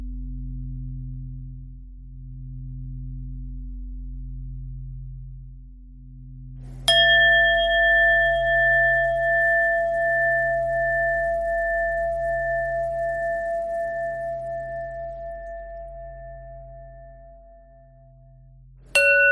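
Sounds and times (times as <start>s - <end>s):
bending bell tone: 6.7s - 19.3s.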